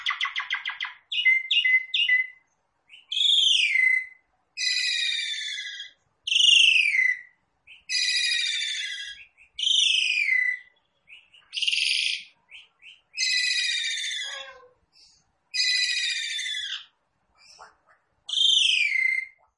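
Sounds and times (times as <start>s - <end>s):
Javan pied starling calling: 0.0s - 19.5s.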